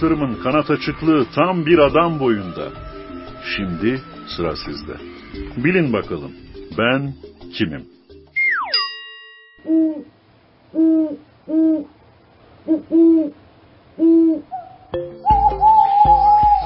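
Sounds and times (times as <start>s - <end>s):
speech: 0.0s - 8.0s, 9.6s - 12.0s, 12.6s - 13.4s, 14.0s - 15.6s
owl hooting: 1.7s - 5.5s, 9.7s - 10.1s, 10.7s - 12.0s, 12.6s - 13.4s, 14.0s - 16.6s.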